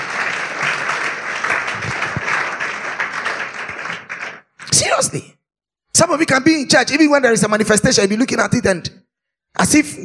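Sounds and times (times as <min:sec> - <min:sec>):
church audience clapping: 0:00.0 - 0:05.1
speech: 0:05.0 - 0:05.4, 0:06.0 - 0:09.0, 0:09.6 - 0:10.0.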